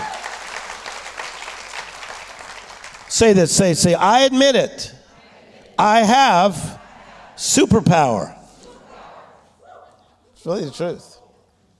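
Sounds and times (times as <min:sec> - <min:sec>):
audience clapping hands: 0:00.0 - 0:03.8
speech: 0:03.2 - 0:05.0, 0:05.8 - 0:06.8, 0:07.4 - 0:08.4, 0:10.4 - 0:11.1.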